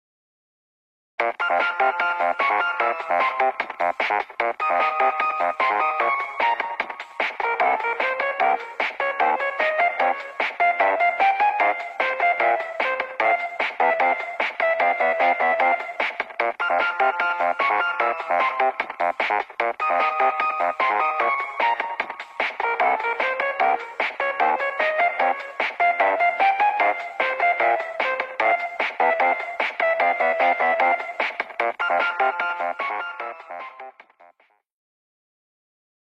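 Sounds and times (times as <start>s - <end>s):
video game ringtone: 1.2s - 34.4s.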